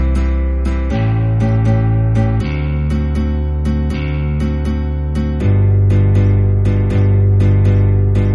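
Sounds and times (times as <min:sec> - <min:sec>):
8-bar blues chord progressions in C: 0:00.0 - 0:08.3.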